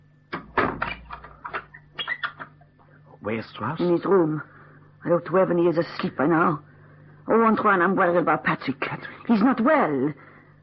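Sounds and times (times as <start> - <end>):
door being pulled shut: 0.4 - 1.3
speech: 3.2 - 6.7, 7.3 - 10.3.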